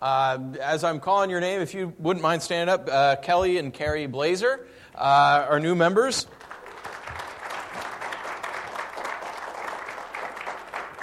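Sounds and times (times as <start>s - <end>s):
speech: 0.0s - 6.4s
audience applause for new members: 6.3s - 11.0s.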